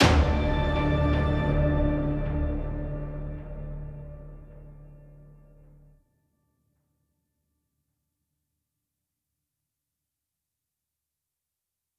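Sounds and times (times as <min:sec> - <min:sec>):
ambient cave music ending: 0:00.0 - 0:06.0.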